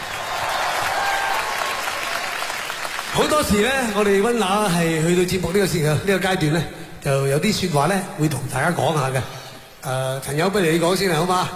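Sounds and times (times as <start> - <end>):
applause: 0.0 - 4.0
speech: 3.2 - 11.5.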